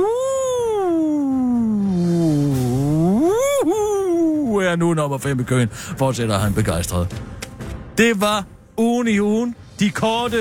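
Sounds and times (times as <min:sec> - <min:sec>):
voice imitating a spooky ghost wail: 0:00.0 - 0:04.6
speech: 0:04.7 - 0:07.4, 0:08.0 - 0:10.4.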